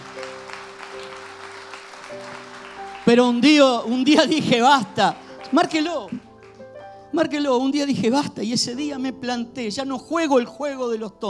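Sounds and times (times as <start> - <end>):
audience applause: 0.0 - 6.8
speech: 3.1 - 6.2, 7.2 - 11.2.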